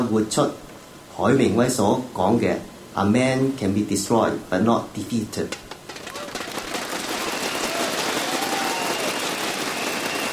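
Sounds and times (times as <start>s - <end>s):
speech: 0.0s - 0.6s, 1.2s - 5.6s
crowd applause: 5.6s - 10.3s
voices cheering: 5.9s - 10.3s.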